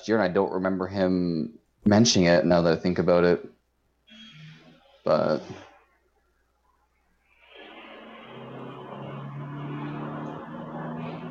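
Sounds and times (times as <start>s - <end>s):
speech: 0.0s - 3.6s, 5.0s - 5.7s
car engine revving outside: 7.3s - 11.2s.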